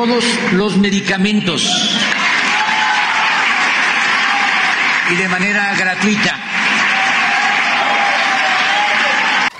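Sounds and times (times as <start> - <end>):
speech: 0.0 - 2.3, 5.1 - 6.5
legislators applauding loudly: 0.0 - 9.5.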